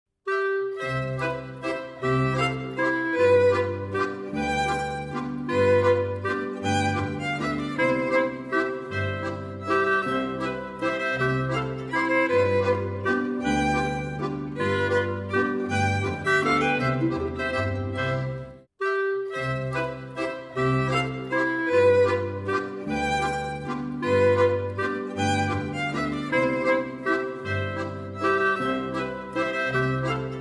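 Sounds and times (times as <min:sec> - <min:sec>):
instrumental music: 0:00.3 - 0:30.3.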